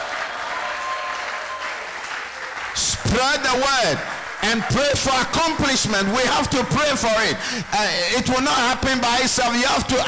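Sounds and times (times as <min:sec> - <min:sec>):
audience clapping: 0:00.0 - 0:06.6
speech: 0:02.8 - 0:10.0.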